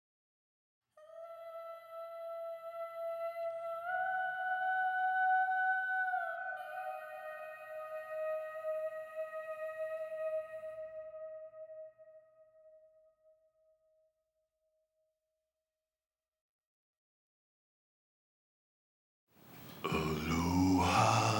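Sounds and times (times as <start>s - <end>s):
isolated vocals: 1.0s - 12.1s, 19.5s - 21.3s.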